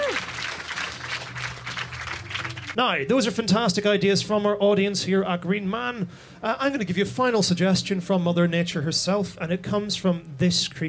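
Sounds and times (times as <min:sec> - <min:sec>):
person whooping: 0:00.0 - 0:00.4
audience applause at a live show: 0:00.0 - 0:02.8
speech: 0:02.8 - 0:10.8.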